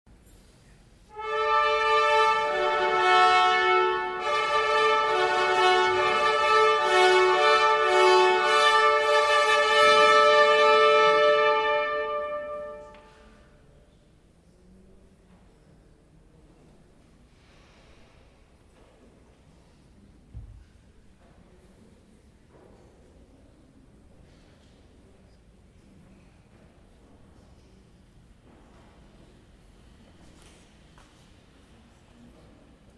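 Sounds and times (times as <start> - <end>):
wedding march bugle fanfares: 1.1 - 13.1.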